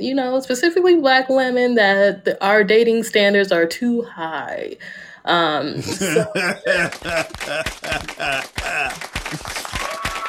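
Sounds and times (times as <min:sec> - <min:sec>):
speech: 0:00.0 - 0:09.6
laughter: 0:05.8 - 0:10.2
audience clapping: 0:06.0 - 0:10.2.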